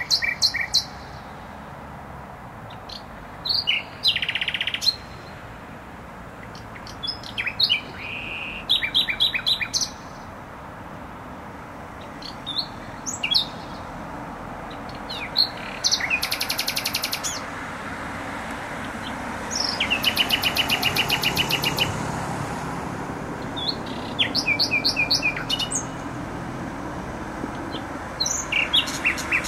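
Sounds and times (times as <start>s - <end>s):
nightingale singing: 0.0s - 1.3s, 2.7s - 5.4s, 6.4s - 10.3s, 12.0s - 14.0s, 14.6s - 17.5s, 18.8s - 22.0s, 23.4s - 26.1s, 27.6s - 29.4s
road traffic noise: 0.0s - 29.4s.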